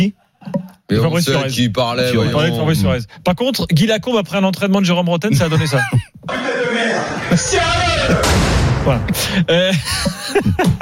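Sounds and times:
speech: 0.0s - 0.2s, 0.9s - 10.7s
laughter: 5.3s - 8.3s, 9.0s - 10.7s
man shouting angrily: 6.3s - 9.1s
door being violently slammed: 6.8s - 9.4s.

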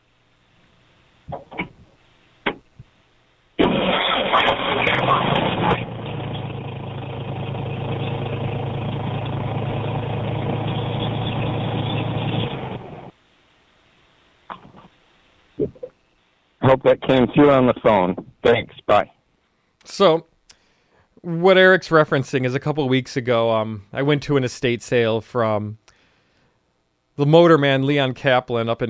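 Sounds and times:
speech: 1.3s - 1.6s, 16.8s - 19.1s, 19.9s - 20.3s, 21.2s - 25.8s, 27.2s - 28.8s
car engine rumbling: 3.6s - 13.1s.

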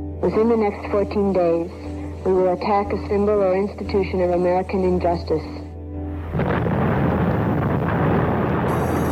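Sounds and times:
speech: 0.2s - 5.6s
muffled film soundtrack cue with rumbling roar: 6.4s - 9.0s.

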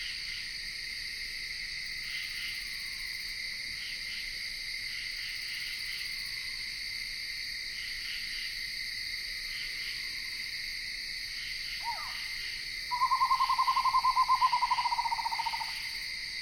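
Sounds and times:
insects in Ithaca New York: 0.0s - 16.3s
screech owl calling in Ithaca New York: 11.8s - 12.3s, 12.9s - 15.8s.

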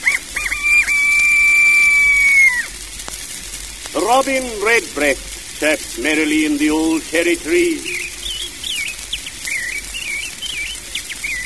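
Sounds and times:
bantam rooster crowing: 0.0s - 2.7s
speech: 4.1s - 8.0s.

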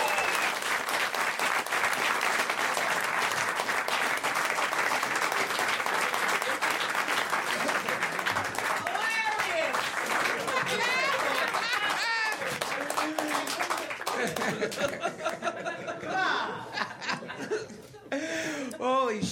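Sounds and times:
audience applause: 0.0s - 15.6s
laughter: 5.4s - 8.6s, 10.1s - 18.7s.

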